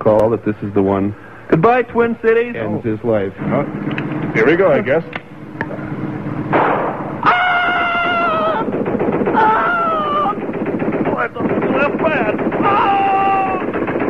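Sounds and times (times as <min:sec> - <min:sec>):
speech: 0:00.0 - 0:05.2
machine gun fire in a film scene: 0:06.4 - 0:14.0
wavering high-pitched tonal cries: 0:07.2 - 0:10.5, 0:12.6 - 0:13.8.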